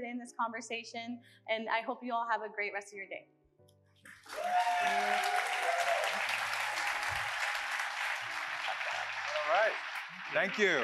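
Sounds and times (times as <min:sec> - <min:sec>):
speech: 0:00.0 - 0:03.4, 0:04.0 - 0:05.5, 0:09.5 - 0:10.8
applause: 0:04.1 - 0:10.8.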